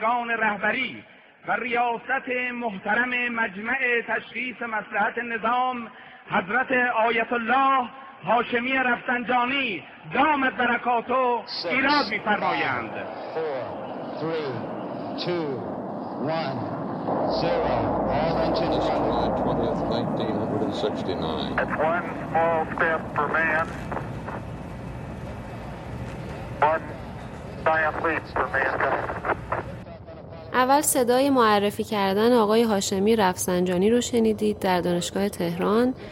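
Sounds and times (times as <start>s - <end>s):
speech: 0.0s - 16.7s, 17.3s - 24.1s, 26.6s - 27.0s, 27.6s - 29.3s, 30.6s - 36.1s
crackly radio-style voices talking: 11.5s - 24.4s, 26.3s - 36.1s
Apollo rocket launch roar: 11.7s - 30.6s.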